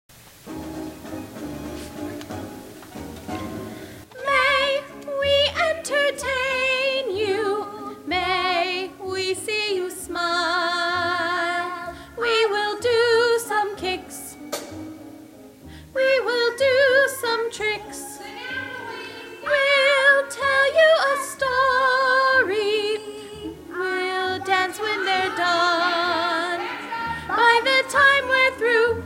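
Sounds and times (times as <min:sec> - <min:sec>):
singing vocals: 0:04.1 - 0:14.5, 0:15.9 - 0:29.0.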